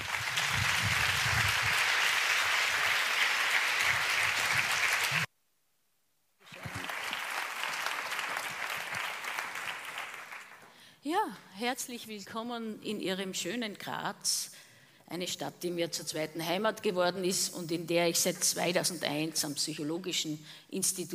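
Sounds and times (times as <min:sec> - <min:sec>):
audience applause: 0:00.0 - 0:05.3, 0:06.4 - 0:10.7
speech: 0:11.1 - 0:21.1.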